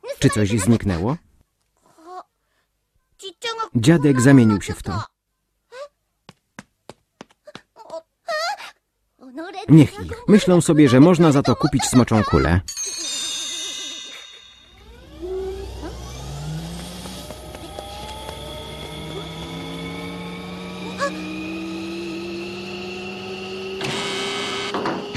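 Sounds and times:
speech: 0.2s - 1.3s, 3.7s - 5.1s, 9.6s - 13.1s
airplane flying overhead: 14.7s - 24.8s.

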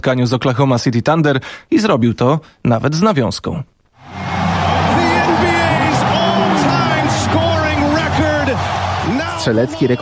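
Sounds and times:
speech: 0.0s - 4.3s, 9.4s - 10.0s
basketball arena crowd cheering: 4.0s - 10.0s
excited man talking: 4.8s - 10.0s.

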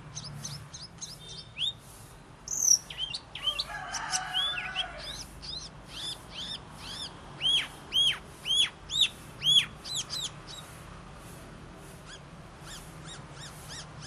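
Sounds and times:
Asian fairy-bluebird singing with rapid sharp chirps and whistles: 0.0s - 10.8s, 12.0s - 14.0s.

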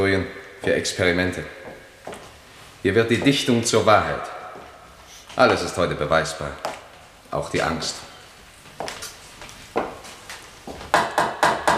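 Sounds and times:
speech: 0.0s - 1.6s, 2.8s - 4.4s, 5.4s - 6.7s, 7.3s - 8.1s
sharp hollow knocks on wood: 10.8s - 11.7s.

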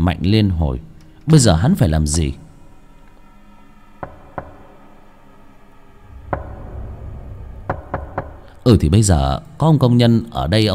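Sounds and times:
speech: 0.0s - 2.4s, 8.7s - 10.7s
knocking on a door: 4.0s - 4.7s, 6.2s - 6.8s, 7.6s - 8.5s.

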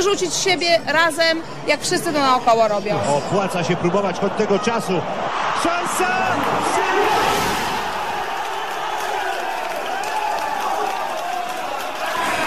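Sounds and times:
speech: 0.0s - 7.2s
crowd of football fans cheering and shouting at home: 3.4s - 12.4s
scattered clapping: 7.9s - 12.4s.

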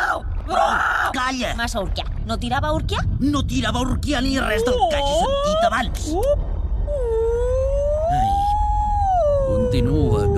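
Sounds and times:
steady low rumble: 0.2s - 10.3s
speech: 0.5s - 6.5s, 9.7s - 10.3s
whale moaning call: 6.8s - 10.3s.

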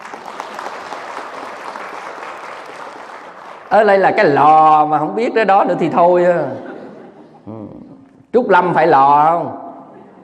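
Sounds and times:
audience applause at a Buddhist talk in Canada: 0.0s - 3.8s
speech: 3.7s - 6.7s, 8.4s - 9.6s
laughter: 6.4s - 8.0s, 9.9s - 10.2s.

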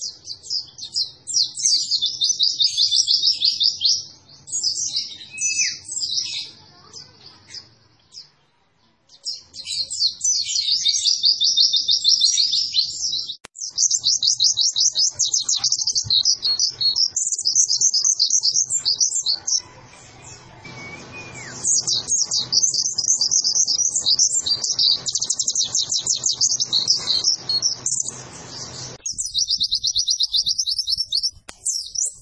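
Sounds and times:
white-eye trilling and twittering: 0.0s - 8.4s, 9.1s - 32.2s.

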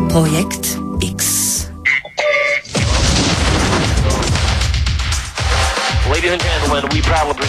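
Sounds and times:
speech: 0.1s - 1.3s, 6.3s - 7.4s
explosion sound effect: 2.7s - 6.0s.

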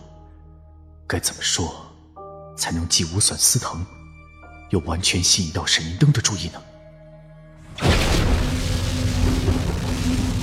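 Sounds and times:
speech: 1.1s - 1.9s, 2.6s - 4.0s, 4.7s - 6.7s
thunder crack with lightning, rumbling roar: 7.8s - 10.4s.

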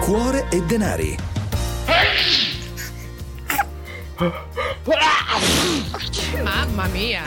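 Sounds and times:
speech: 0.1s - 1.3s, 1.9s - 2.4s, 4.2s - 7.2s
sneeze: 1.9s - 2.6s, 4.9s - 6.1s.

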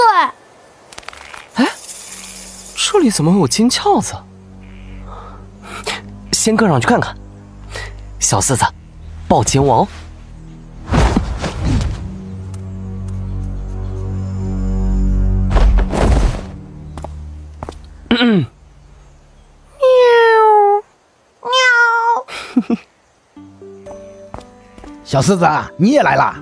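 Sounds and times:
low rumbling: 1.8s - 20.6s
speech: 2.9s - 4.3s, 6.4s - 7.2s, 8.2s - 10.0s, 25.2s - 26.4s
cat meowing: 21.4s - 22.2s.

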